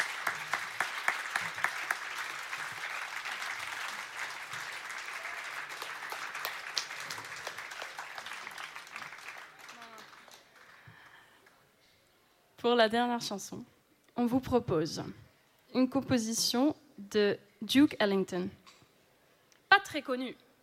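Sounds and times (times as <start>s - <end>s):
audience applause: 0.0s - 11.6s
speech: 12.6s - 18.6s, 19.9s - 20.4s.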